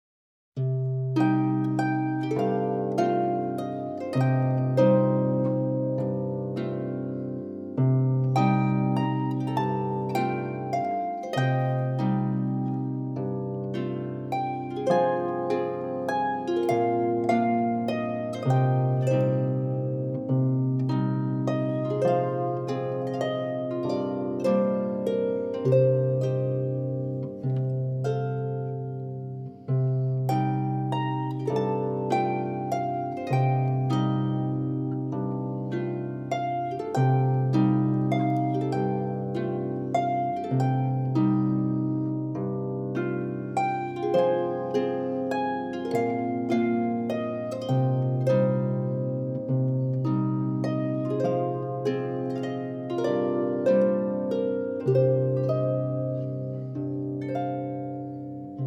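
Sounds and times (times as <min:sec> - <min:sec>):
instrumental music: 0:00.6 - 0:58.6.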